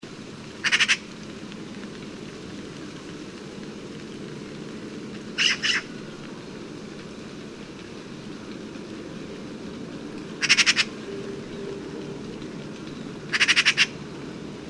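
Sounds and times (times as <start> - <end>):
Eurasian magpie Pica pica rattling chatter: 0.6 - 1.0, 5.4 - 5.9, 10.4 - 11.0, 13.2 - 14.0.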